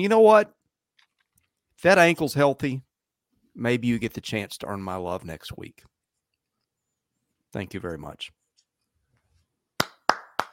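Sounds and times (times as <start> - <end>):
speech: 0.0 - 0.6, 1.8 - 2.9, 3.6 - 6.0, 7.5 - 8.4
clapping: 9.8 - 10.5.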